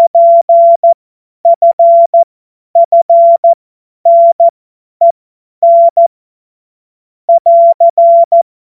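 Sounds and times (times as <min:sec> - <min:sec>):
CW Morse code beeps: 0:00.0 - 0:04.5, 0:05.6 - 0:06.1, 0:07.3 - 0:08.4.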